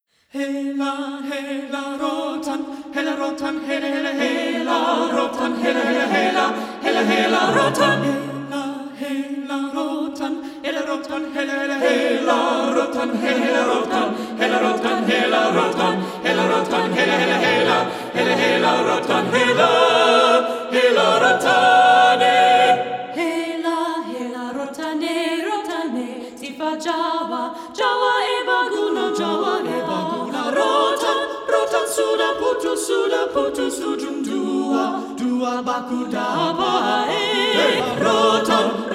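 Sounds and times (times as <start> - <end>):
SATB four-part choir singing: 0.3 - 38.9.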